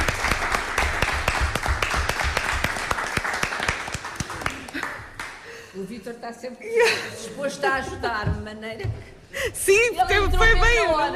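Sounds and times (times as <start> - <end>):
applause: 0.0 - 5.5
speech: 6.2 - 11.1.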